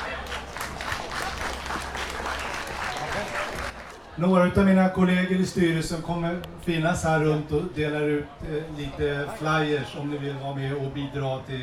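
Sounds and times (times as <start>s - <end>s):
audience applause: 0.0s - 4.1s
speech: 4.2s - 11.6s.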